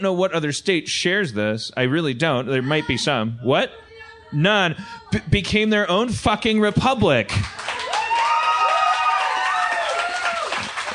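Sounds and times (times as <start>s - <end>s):
speech: 0.0s - 7.8s
sparse audience applause: 7.3s - 10.9s.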